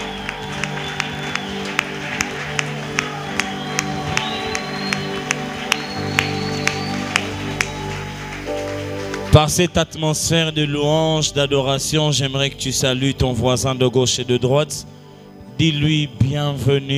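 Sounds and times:
church congregation clapping to praise the Lord at Sunday worship: 0:00.0 - 0:10.6
sustained instrumental tones: 0:00.0 - 0:14.6
speech: 0:09.4 - 0:15.0, 0:15.6 - 0:16.9.

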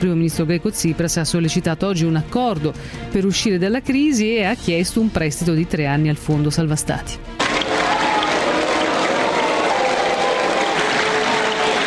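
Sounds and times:
speech: 0:00.0 - 0:07.4
large crowd applauding in the European Parliament: 0:07.4 - 0:11.8
whistles and jeers in the European Parliament: 0:07.6 - 0:11.8.

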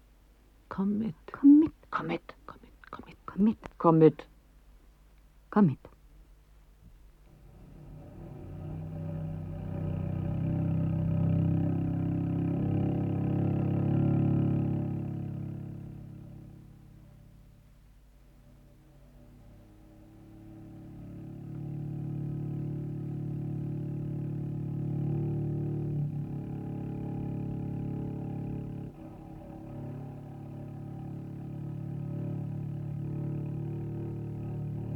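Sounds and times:
speech: 0:00.7 - 0:02.4, 0:03.4 - 0:04.3, 0:05.5 - 0:05.9
engine of a fully loaded car droning and revving: 0:07.3 - 0:17.2, 0:19.1 - 0:34.9.

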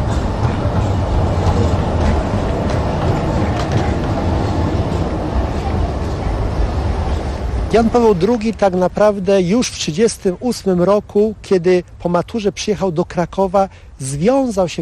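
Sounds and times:
tram in Kraków rumbling along rails: 0:00.0 - 0:11.0
speech: 0:07.7 - 0:14.8.

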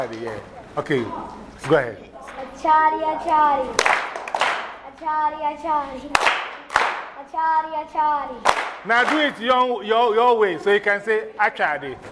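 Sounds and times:
speech: 0:00.0 - 0:04.0, 0:05.0 - 0:06.4, 0:07.3 - 0:12.1
children clapping hands: 0:03.3 - 0:05.0, 0:06.1 - 0:07.2, 0:08.4 - 0:09.4.

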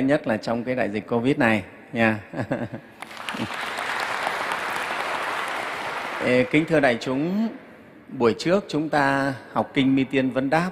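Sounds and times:
speech: 0:00.0 - 0:03.7, 0:06.2 - 0:10.7
audience applause at a Buddhist sutra lecture: 0:03.0 - 0:06.8.

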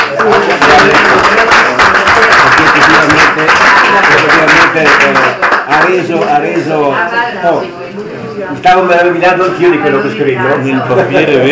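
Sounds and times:
crowd applauding: 0:00.0 - 0:06.4
speech: 0:04.8 - 0:07.8, 0:08.6 - 0:11.4.

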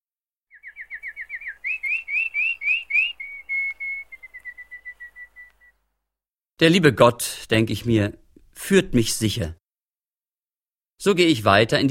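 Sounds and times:
birds singing in a forest: 0:00.5 - 0:05.9
speech: 0:06.6 - 0:09.6, 0:11.0 - 0:11.8.

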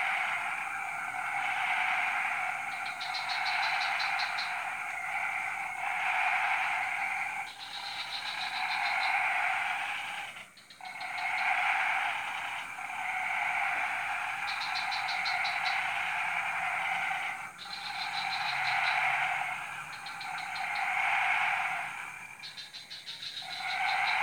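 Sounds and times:
frog chorus: 0:00.0 - 0:24.2.

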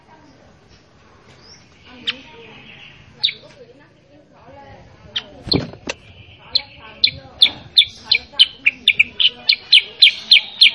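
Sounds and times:
sooty-headed bulbul song: 0:01.5 - 0:03.6, 0:05.1 - 0:10.7.

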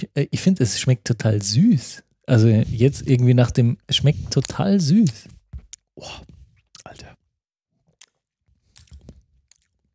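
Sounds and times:
speech: 0:00.0 - 0:05.4, 0:06.0 - 0:07.2
lips smacking while chewing: 0:04.4 - 0:07.1, 0:07.9 - 0:09.9.

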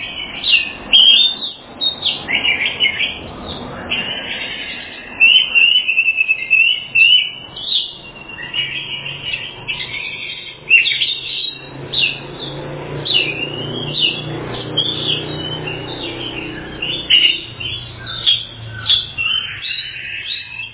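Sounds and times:
Oriental magpie-robin whistled phrases: 0:00.0 - 0:20.7.

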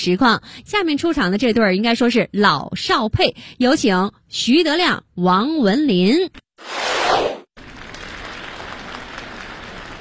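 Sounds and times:
speech: 0:00.0 - 0:06.9
audience applause: 0:07.6 - 0:10.0.

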